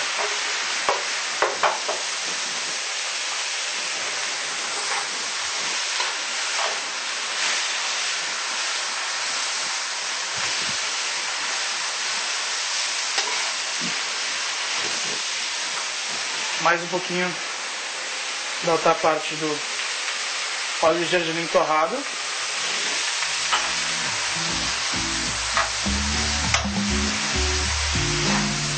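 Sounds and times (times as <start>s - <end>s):
broccoli stir-frying in a pan with soy sauce: 0.0s - 28.7s
utensil scraping a pan while stirring: 13.2s - 13.6s, 22.6s - 24.7s
speech: 16.7s - 17.4s, 18.6s - 19.7s, 20.8s - 22.2s.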